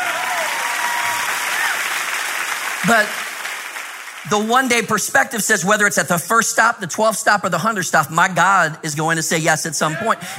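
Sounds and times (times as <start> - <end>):
audience clapping: 0.0 - 4.9
speech: 2.8 - 3.2, 4.2 - 10.3.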